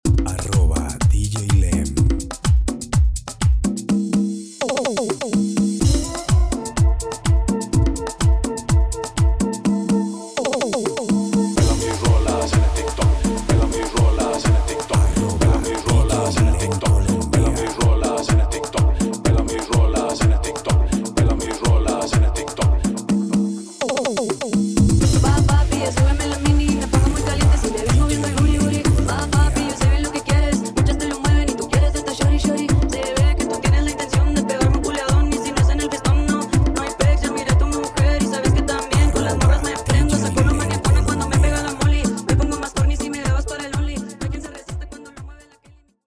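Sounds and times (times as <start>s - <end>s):
merengue music: 0.0s - 45.6s.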